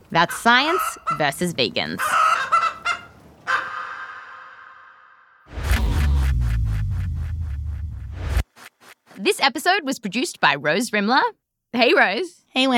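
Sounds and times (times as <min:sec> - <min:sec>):
speech: 0:00.1 - 0:02.3, 0:09.3 - 0:12.7
chickens clucking: 0:00.3 - 0:04.4
low rumble: 0:05.5 - 0:08.5.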